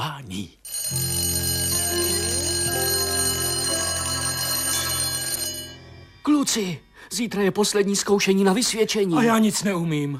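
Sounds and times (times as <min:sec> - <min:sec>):
speech: 0:00.1 - 0:01.1, 0:06.4 - 0:10.1
school bell ringing end of lessons: 0:00.7 - 0:06.5.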